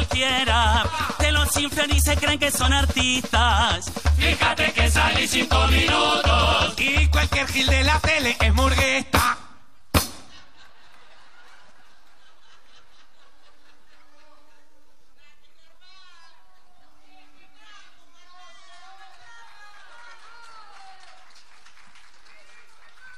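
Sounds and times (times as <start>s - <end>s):
speech: 0.2s - 9.4s
laughter: 10.3s - 16.9s
thin scattered audience applause: 18.3s - 23.1s.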